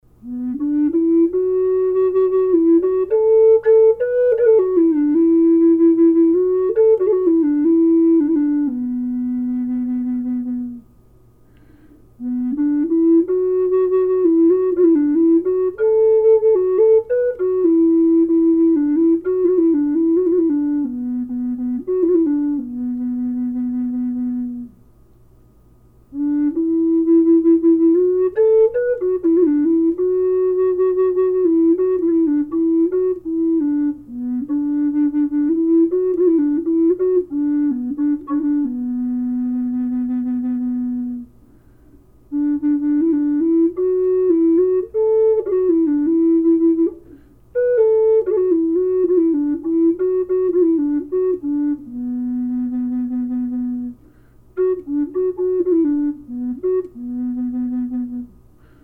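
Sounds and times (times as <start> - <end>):
flutes playing low B: 0.2 - 24.9, 26.1 - 41.4, 42.3 - 58.8.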